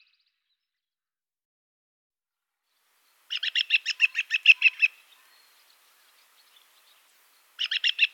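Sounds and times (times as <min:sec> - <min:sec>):
Western marsh harrier chattering call: 0:03.3 - 0:05.1, 0:07.6 - 0:08.0.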